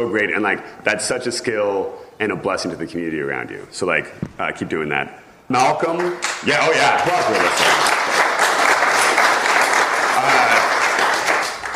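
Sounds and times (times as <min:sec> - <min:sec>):
speech: 0:00.0 - 0:07.9
audience applause: 0:06.2 - 0:11.7.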